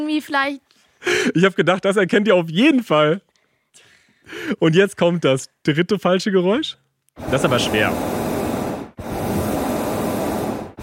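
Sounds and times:
speech: 0.0s - 3.3s, 4.3s - 8.2s
gas burner of a hot air balloon: 7.2s - 10.8s.

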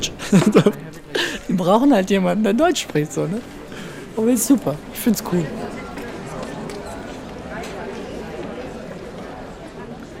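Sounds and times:
murmur of a crowd filling a hall: 0.0s - 10.1s
laughter: 0.1s - 1.5s, 3.5s - 7.6s
speech: 0.3s - 0.9s, 1.6s - 3.6s, 4.2s - 5.8s
scattered footsteps and shuffling: 2.6s - 9.3s.

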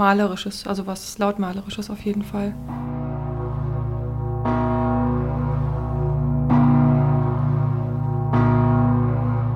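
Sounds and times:
speech: 0.0s - 2.9s
low hum: 2.1s - 9.5s
large church bells tolling: 2.2s - 9.5s.

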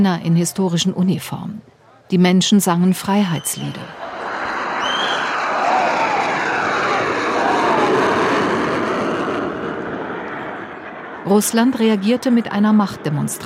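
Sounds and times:
speech: 0.0s - 4.0s, 11.3s - 13.4s
two fighter jets flying low overhead: 3.6s - 13.4s.

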